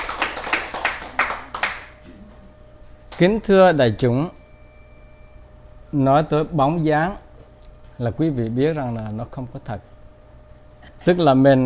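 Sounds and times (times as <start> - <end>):
audience clapping at a Buddhist dharma talk: 0.0 - 2.0
speech: 3.2 - 4.4, 5.9 - 7.2, 8.0 - 9.9, 11.0 - 11.6.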